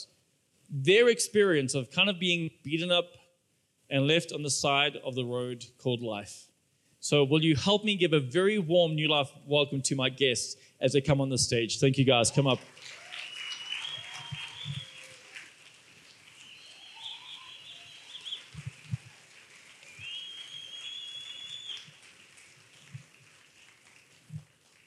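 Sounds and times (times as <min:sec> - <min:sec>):
speech: 0:00.7 - 0:03.2, 0:03.9 - 0:13.0
audience cheering: 0:12.3 - 0:24.8.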